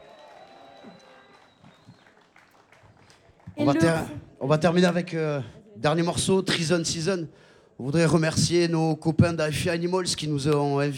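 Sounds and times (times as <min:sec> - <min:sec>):
festival audience applause: 0:00.0 - 0:04.2
speech: 0:03.6 - 0:10.9.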